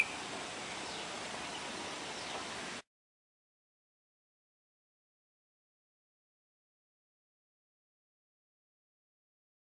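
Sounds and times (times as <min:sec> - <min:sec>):
bulbul song: 0:00.0 - 0:02.4.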